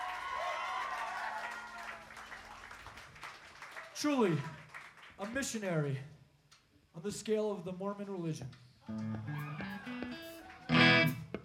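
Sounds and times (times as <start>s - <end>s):
audience applause: 0.0s - 5.1s, 9.0s - 11.3s
speech: 4.0s - 4.6s, 5.2s - 6.2s, 7.0s - 9.7s.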